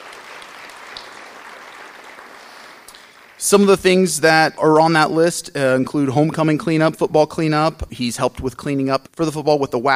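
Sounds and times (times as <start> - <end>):
audience applause: 0.0 - 3.8
speech: 3.4 - 9.9.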